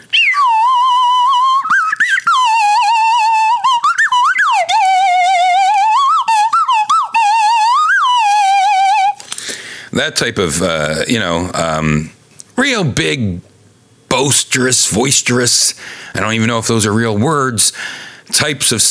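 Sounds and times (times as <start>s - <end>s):
slide whistle: 0.0s - 9.2s
speech: 10.0s - 13.5s, 14.2s - 18.8s.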